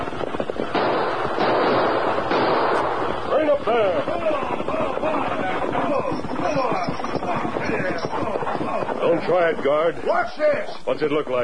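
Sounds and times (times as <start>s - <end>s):
crackling rumble of noise: 0.0s - 11.4s
gunshot fired into the air: 0.7s - 3.1s
speech: 9.3s - 11.4s.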